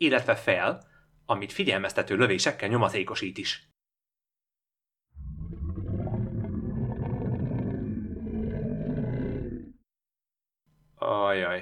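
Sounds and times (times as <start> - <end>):
speech: 0.0 - 3.7, 11.0 - 11.6
earth-shaking roar of a beast: 5.2 - 9.8.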